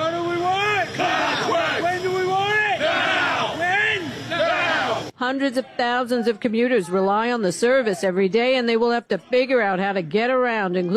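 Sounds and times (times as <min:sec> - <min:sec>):
striking rail workers chanting at a picket line: 0:00.0 - 0:08.1
speech: 0:05.2 - 0:10.9.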